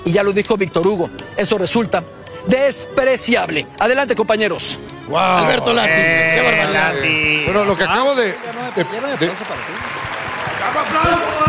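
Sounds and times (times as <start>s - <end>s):
speech: 0.0s - 9.9s
several voices talking loudly: 5.1s - 9.7s
audience applause: 6.1s - 11.4s.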